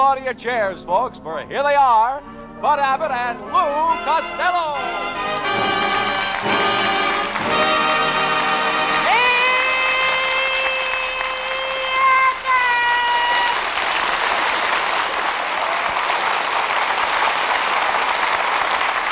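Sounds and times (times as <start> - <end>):
speech: 0.0 - 5.7
brassy orchestral fanfare: 2.6 - 12.5
audience applause, cheering and yelling: 5.0 - 19.1.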